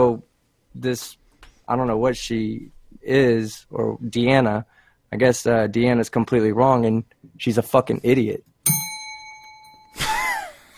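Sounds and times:
speech: 0.0 - 8.9
bell ringing during a game: 8.6 - 10.7.

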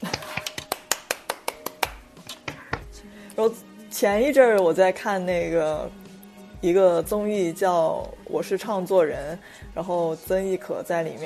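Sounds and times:
person clapping hands: 0.0 - 3.0
speech: 3.4 - 6.0, 6.6 - 11.2.

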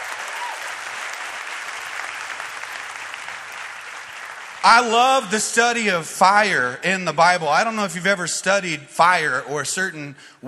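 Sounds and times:
large audience applause: 0.0 - 5.8
speech: 4.6 - 10.4.

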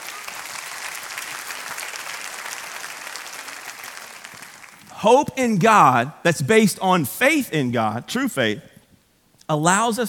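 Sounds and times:
audience clapping: 0.0 - 5.0
speech: 5.0 - 8.7, 9.5 - 10.0.

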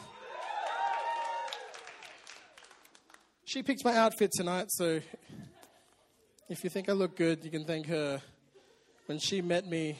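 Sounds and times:
audience cheering and whooping: 0.0 - 2.7
scattered clapping: 0.6 - 3.3
speech: 3.5 - 5.4, 6.5 - 8.3, 9.1 - 9.9.

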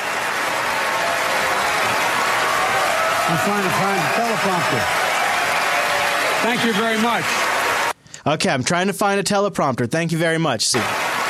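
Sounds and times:
audience applause: 0.0 - 8.0, 10.7 - 11.2
speech: 3.3 - 5.1, 6.4 - 7.5, 8.2 - 11.0.

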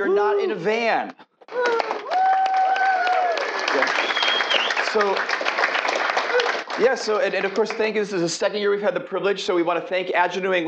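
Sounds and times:
speech: 0.0 - 1.9, 3.8 - 4.1, 4.9 - 5.4, 6.8 - 10.6
audience round of applause: 1.5 - 8.1.

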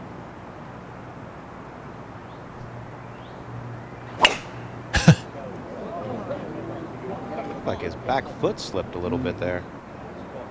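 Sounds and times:
golf club striking ball on a tee shot during a tournament round: 4.2 - 5.2
low steady murmur: 4.2 - 7.3
speech: 7.7 - 9.8.

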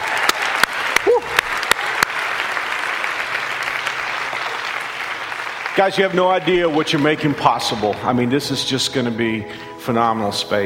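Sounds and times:
audience applause: 0.0 - 8.3
speech: 5.8 - 10.6.

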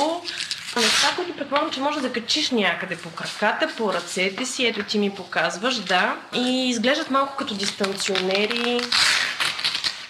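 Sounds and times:
velcro strap being pulled open: 0.2 - 1.3, 7.6 - 10.0
speech: 0.2 - 9.3.

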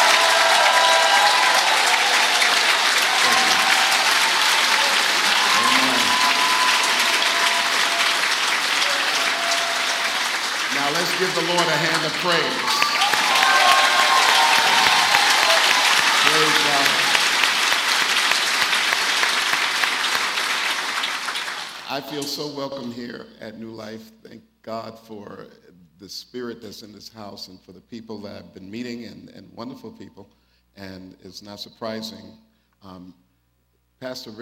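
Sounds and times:
audience applause for guest speaker: 0.0 - 22.1
speech: 11.5 - 12.8, 22.0 - 33.2, 34.0 - 34.4.

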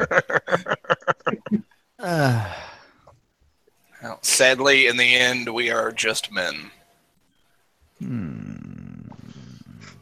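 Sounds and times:
laughter: 0.0 - 1.7
speech: 4.3 - 6.8
low rough groan from a listener: 8.0 - 9.9.

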